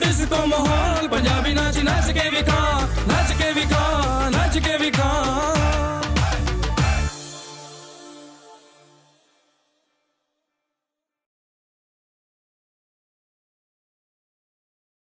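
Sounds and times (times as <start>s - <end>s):
Punjabi dhol drumming: 0.0s - 7.4s.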